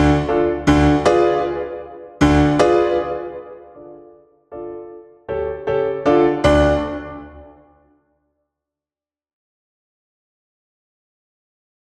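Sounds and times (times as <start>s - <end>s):
piano accompaniment: 0.0s - 7.9s.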